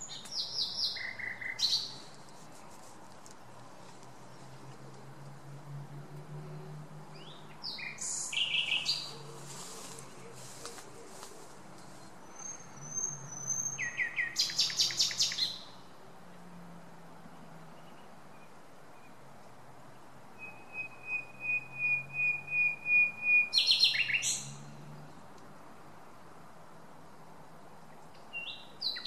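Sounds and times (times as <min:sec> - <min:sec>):
common nightingale Luscinia megarhynchos singing whistled rattling and clicking phrases: 0:00.0 - 0:02.2, 0:07.1 - 0:15.8, 0:20.4 - 0:24.8, 0:28.2 - 0:29.0.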